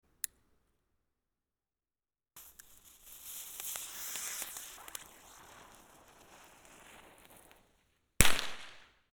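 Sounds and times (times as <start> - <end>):
nezumi spinning firework: 2.4 - 9.0.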